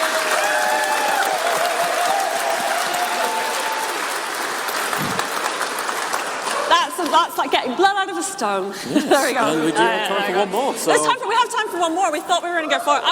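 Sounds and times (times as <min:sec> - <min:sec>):
audience clapping: 0:00.0 - 0:07.5
speech: 0:07.1 - 0:13.0.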